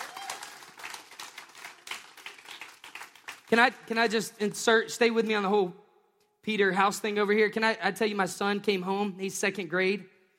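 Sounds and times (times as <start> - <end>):
audience clapping: 0.0 - 4.2
speech: 3.5 - 5.8, 6.4 - 10.2.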